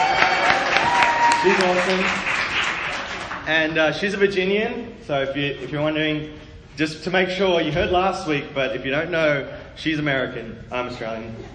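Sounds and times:
audience clapping: 0.0 - 3.8
speech: 1.4 - 2.4, 3.5 - 11.5.

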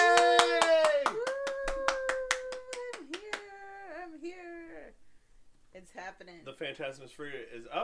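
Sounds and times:
rhythmic hand claps: 0.0 - 3.6
person cheering: 0.0 - 4.2
speech: 6.5 - 7.8.

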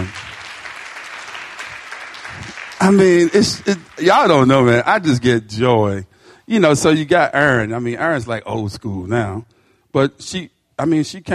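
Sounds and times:
audience clapping: 0.0 - 5.2
speech: 2.8 - 11.3.

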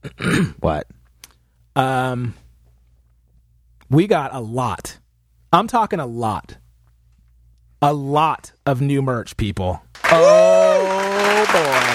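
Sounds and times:
speech: 0.1 - 0.9, 1.8 - 2.4, 3.9 - 6.6, 7.8 - 10.9
clapping: 10.0 - 11.9.

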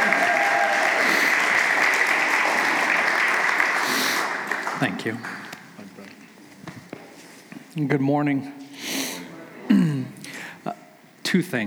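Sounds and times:
crowd applause: 0.0 - 6.1
speech: 4.8 - 5.5, 7.8 - 8.6, 11.3 - 11.6.

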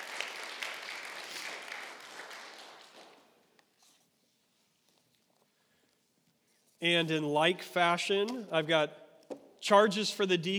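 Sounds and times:
audience applauding: 0.0 - 3.4
speech: 6.8 - 9.0, 9.6 - 10.5.

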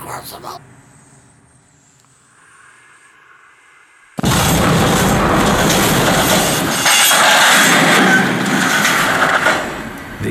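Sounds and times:
express train plowing through a wooden barrier and plunging into a ravine: 4.2 - 10.2.

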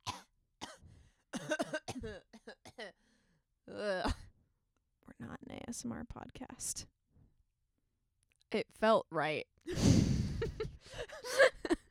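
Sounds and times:
person coughing: 0.0 - 3.0
speech: 1.5 - 3.0, 3.7 - 4.2, 5.7 - 7.0, 8.5 - 11.5.

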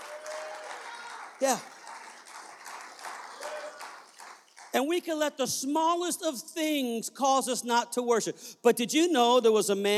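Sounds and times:
people clapping hands: 0.0 - 5.0
speech: 1.4 - 1.8, 4.7 - 9.9.

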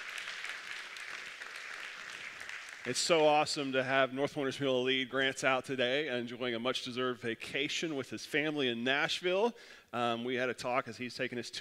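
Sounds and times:
church congregation applauding its worship team: 0.0 - 3.7
speech: 2.8 - 11.6.

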